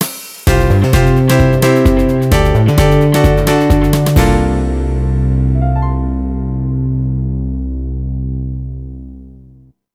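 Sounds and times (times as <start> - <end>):
music ending: 0.5 - 9.4.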